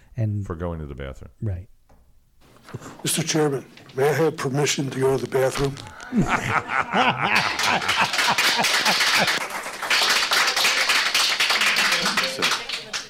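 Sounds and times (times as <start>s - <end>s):
speech: 0.2s - 1.8s, 2.7s - 9.6s
audience clapping: 5.0s - 13.0s
people laughing: 5.7s - 9.6s, 11.6s - 12.7s.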